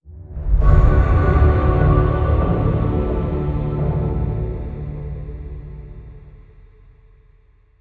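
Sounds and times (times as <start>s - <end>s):
music stinger: 0.1s - 6.5s.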